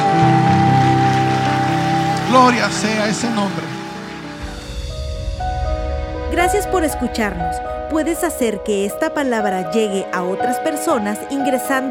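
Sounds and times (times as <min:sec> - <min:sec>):
church audience applauding: 0:00.0 - 0:04.8
held keyboard or organ notes: 0:00.0 - 0:10.0
speech: 0:02.4 - 0:03.8, 0:06.4 - 0:11.8.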